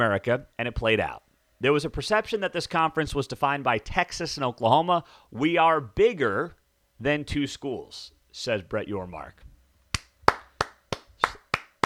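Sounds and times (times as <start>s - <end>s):
speech: 0.0s - 9.4s
slow clap: 9.9s - 11.8s.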